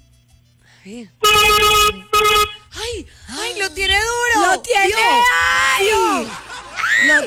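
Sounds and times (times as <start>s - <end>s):
speech: 0.8s - 2.3s, 2.9s - 6.4s, 7.0s - 7.2s
vehicle horn blasts: 1.1s - 3.1s
laughter: 4.7s - 7.2s.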